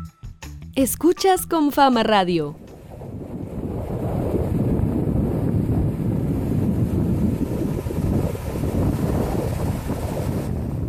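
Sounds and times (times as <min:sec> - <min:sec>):
speech: 0:00.8 - 0:02.6
sea waves at a beach in Necoclí: 0:02.6 - 0:10.8.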